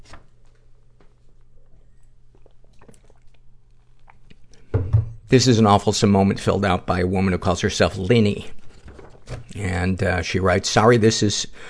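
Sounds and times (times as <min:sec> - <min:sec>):
sipping coffee from a mug: 0:01.7 - 0:04.7
speech: 0:05.3 - 0:08.6, 0:09.6 - 0:11.6.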